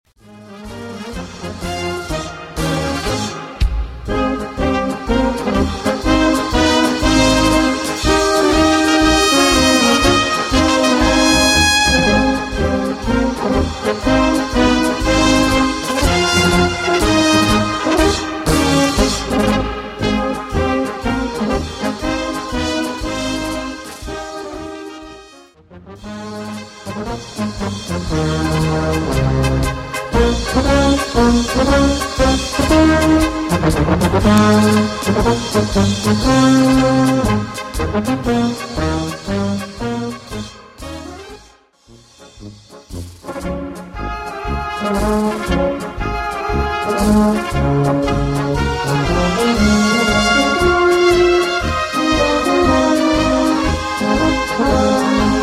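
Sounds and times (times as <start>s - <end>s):
brass band music: 0.1s - 55.4s.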